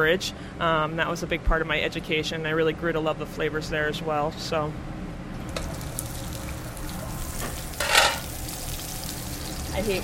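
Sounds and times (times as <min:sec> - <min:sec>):
speech: 0:00.0 - 0:04.9, 0:09.8 - 0:10.0
cauliflower searing in a hot pan: 0:05.5 - 0:10.0.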